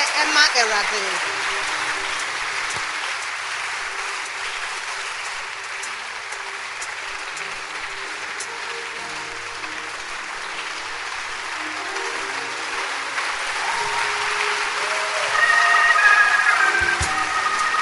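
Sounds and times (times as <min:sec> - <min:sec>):
audience hand clapping: 0:00.0 - 0:17.8
speech: 0:00.2 - 0:01.8.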